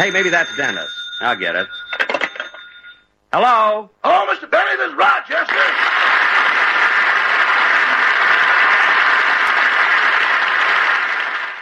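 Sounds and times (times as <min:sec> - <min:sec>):
speech: 0:00.0 - 0:02.0, 0:03.3 - 0:05.9
studio audience applause: 0:05.4 - 0:11.6.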